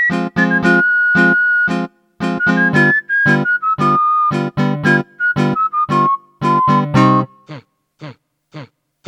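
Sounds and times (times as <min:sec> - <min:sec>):
tango music: 0:00.1 - 0:07.3.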